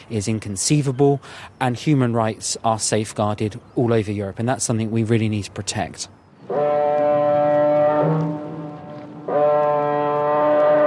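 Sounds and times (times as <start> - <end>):
faint wind: 0.0 - 10.8
speech: 0.1 - 6.2
car ferry foghorn blasts in the fog: 6.5 - 10.8.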